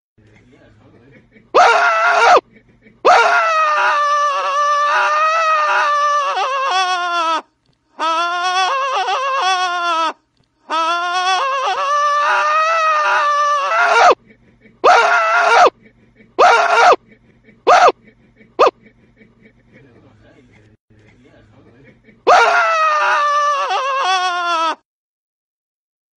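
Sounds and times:
laughter: 0.2 - 24.8
person screaming: 1.6 - 2.4, 3.1 - 7.4, 8.0 - 14.2, 14.8 - 15.7, 16.4 - 17.0, 17.7 - 18.0, 22.3 - 24.8.

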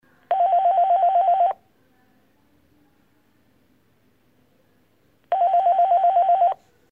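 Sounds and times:
external telephone ringing: 0.3 - 1.6, 5.3 - 6.6.

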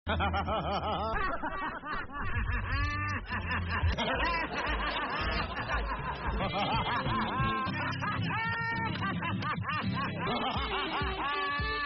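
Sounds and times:
contagious laughter: 0.1 - 11.8.

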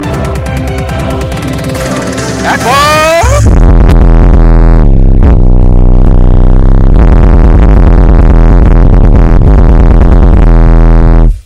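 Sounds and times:
walking bass line: 0.0 - 11.4.

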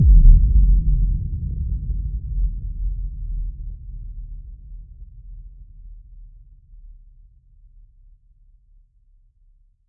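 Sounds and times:
cinematic boom: 0.0 - 4.1.

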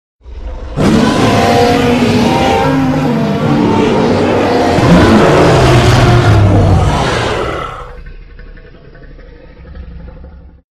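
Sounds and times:
dragon creature sound: 0.7 - 9.0.

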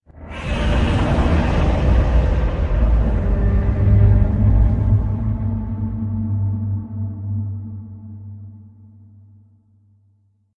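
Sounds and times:
distant Godzilla roar: 0.3 - 6.0.

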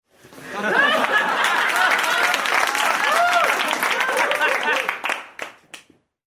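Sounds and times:
people laughing: 0.4 - 5.2
people applauding: 0.6 - 6.0.

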